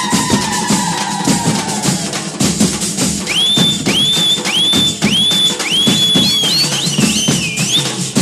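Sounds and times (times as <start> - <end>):
theme music: 0.0 - 8.1.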